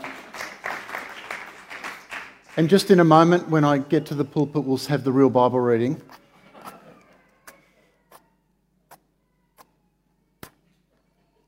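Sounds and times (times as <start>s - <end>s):
audience applause at a church service: 0.0s - 3.0s
speech: 2.6s - 6.2s.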